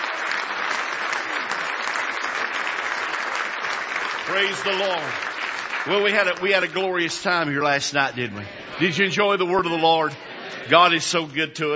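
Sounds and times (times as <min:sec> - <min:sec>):
audience hand clapping: 0:00.0 - 0:07.8
speech: 0:04.3 - 0:11.7.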